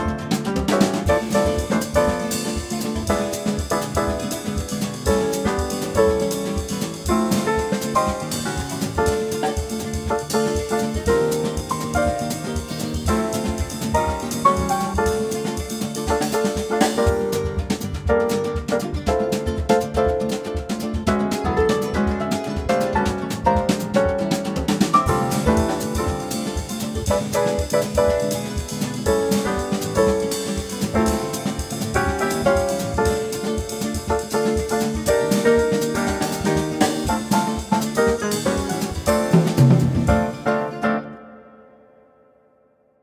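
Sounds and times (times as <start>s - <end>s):
jazz bass play-along: 0.0s - 41.2s.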